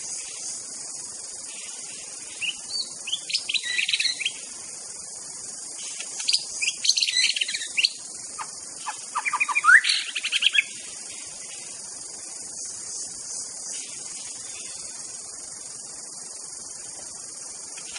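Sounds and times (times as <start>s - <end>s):
insect drone: 0.0s - 17.9s
white-rumped shama whistled song: 2.4s - 4.4s, 6.2s - 10.8s.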